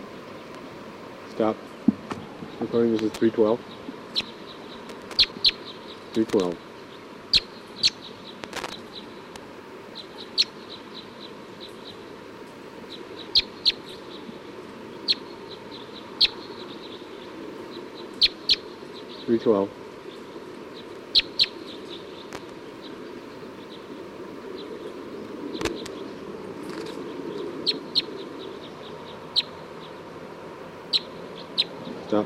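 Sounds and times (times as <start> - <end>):
speech: 1.4 - 1.7, 2.7 - 3.8, 6.2 - 6.7, 19.3 - 19.8
short high bird chirps: 3.6 - 9.3, 9.9 - 12.0, 12.9 - 19.5, 20.1 - 26.2, 26.8 - 30.0, 30.9 - 32.1.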